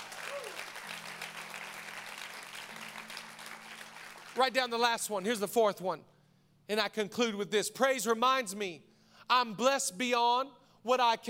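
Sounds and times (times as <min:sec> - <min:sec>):
audience clapping: 0:00.0 - 0:05.2
speech: 0:04.4 - 0:06.1, 0:06.7 - 0:11.2.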